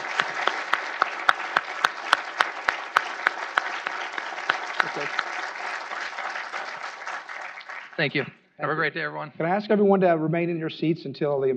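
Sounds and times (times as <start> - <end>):
audience round of applause: 0.0 - 8.3
speech: 5.0 - 5.2, 8.0 - 11.5.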